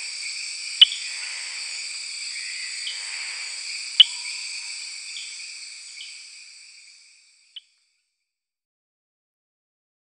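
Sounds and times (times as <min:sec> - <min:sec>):
insect chorus: 0:00.0 - 0:08.4
Eleutherodactylus inguinalis frog making sharp clicks: 0:00.1 - 0:06.2.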